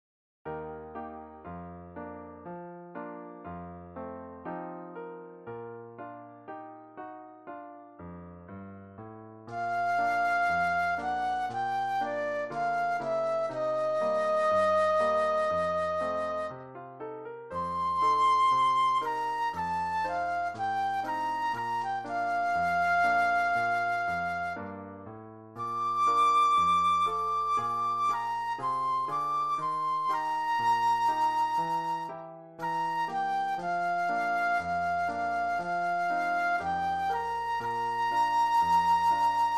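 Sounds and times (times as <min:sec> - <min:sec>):
flute solo: 0:09.5 - 0:16.7, 0:17.5 - 0:25.0, 0:25.6 - 0:39.5.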